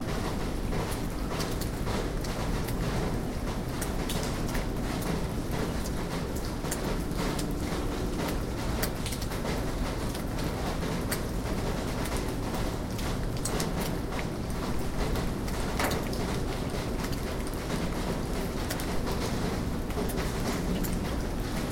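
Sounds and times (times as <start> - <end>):
night rain in a Russian city: 0.0 - 21.6.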